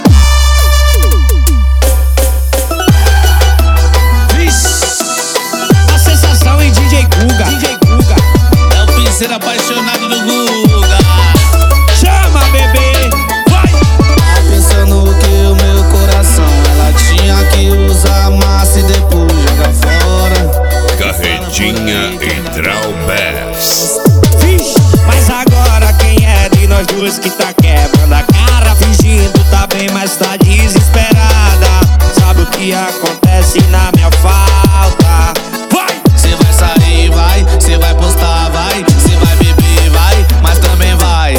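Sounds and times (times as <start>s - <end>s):
piseiro music: 0.0s - 41.3s.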